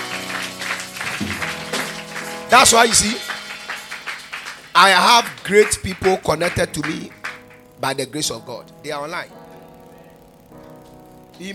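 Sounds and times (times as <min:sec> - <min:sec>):
audience clapping: 0:00.0 - 0:08.0
speech: 0:02.5 - 0:03.3, 0:04.8 - 0:07.2, 0:07.8 - 0:09.4, 0:11.4 - 0:11.5.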